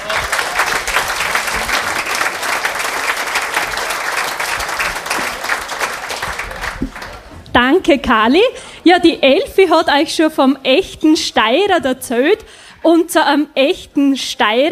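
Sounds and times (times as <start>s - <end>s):
audience applause: 0.0s - 7.4s
speech: 7.6s - 14.7s.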